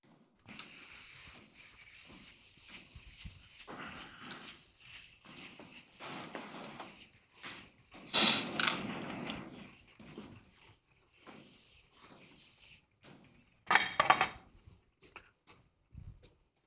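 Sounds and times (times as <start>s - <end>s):
chalkboard being erased during a physics lecture: 0.4s - 13.0s.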